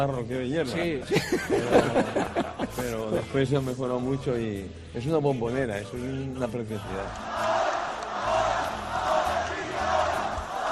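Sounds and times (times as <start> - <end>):
speech: 0.0 - 7.4
laughter: 0.6 - 3.7
football stadium crowd chanting: 7.1 - 10.6.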